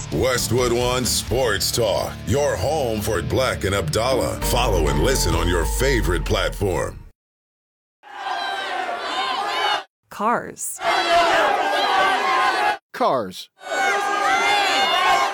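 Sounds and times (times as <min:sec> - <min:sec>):
speech: 0:00.1 - 0:07.0, 0:10.2 - 0:11.3, 0:13.0 - 0:13.6
crowd yelling: 0:08.1 - 0:09.9, 0:10.8 - 0:12.8, 0:13.6 - 0:15.3.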